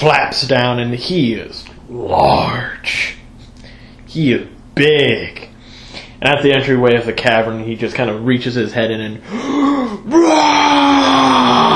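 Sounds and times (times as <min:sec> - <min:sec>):
speech: 0:00.0 - 0:03.2, 0:04.1 - 0:05.5, 0:06.2 - 0:09.6
person imitating a creature's roar with a strained vocal bellow: 0:09.4 - 0:11.7.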